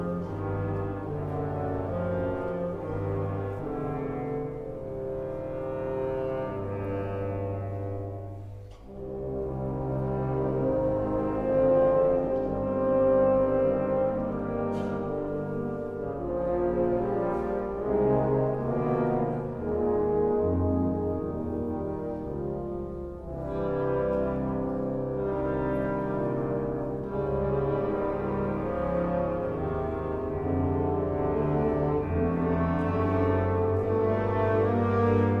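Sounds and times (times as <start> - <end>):
orchestral symphony: 0.0 - 35.3.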